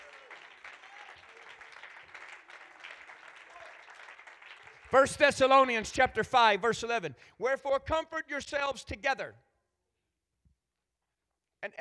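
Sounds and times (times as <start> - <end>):
congregation clapping during a church service: 0.0 - 6.6
speech: 4.9 - 9.4.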